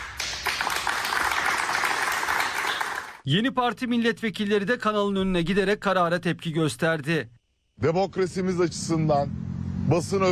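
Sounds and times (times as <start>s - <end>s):
Halk TV studio staff applauding in protest: 0.0s - 3.2s
speech: 3.2s - 10.3s.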